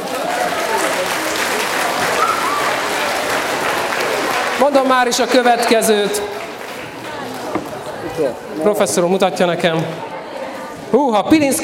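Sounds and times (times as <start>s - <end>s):
audience applause: 0.0s - 8.6s
speech: 4.6s - 6.4s, 8.2s - 10.1s, 10.9s - 11.6s.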